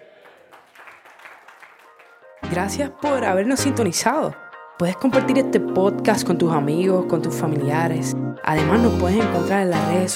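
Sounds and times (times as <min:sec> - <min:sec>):
crowd clapping: 0:00.0 - 0:02.5
speech: 0:02.5 - 0:10.1.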